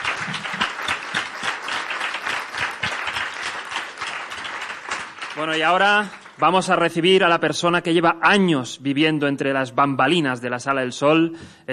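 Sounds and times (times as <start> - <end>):
audience applause: 0.0 - 6.6
speech: 5.4 - 11.7.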